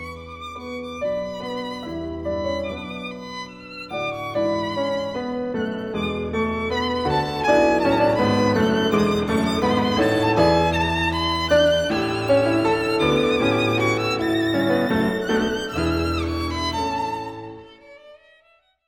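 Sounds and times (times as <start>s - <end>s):
violin and piano sonata: 0.0s - 18.8s.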